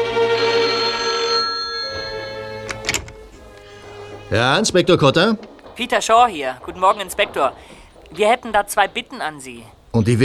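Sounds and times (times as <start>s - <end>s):
telephone ringing: 0.0s - 4.6s
speech: 4.3s - 10.2s.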